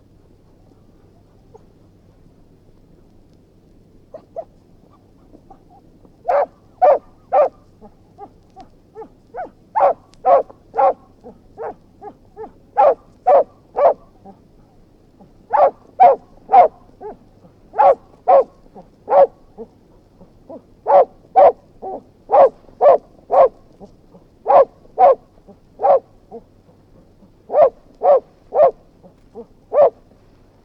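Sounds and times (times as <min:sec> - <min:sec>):
anxious dog barking: 0:04.1 - 0:04.5, 0:05.5 - 0:08.4, 0:09.0 - 0:14.2, 0:15.5 - 0:19.7, 0:20.5 - 0:26.4, 0:27.5 - 0:28.8, 0:29.4 - 0:30.0.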